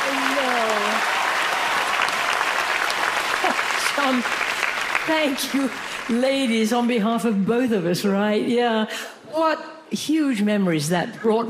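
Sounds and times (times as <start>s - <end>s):
vigorous crowd applause: 0.0s - 6.6s
speech: 4.1s - 4.4s, 5.1s - 11.4s.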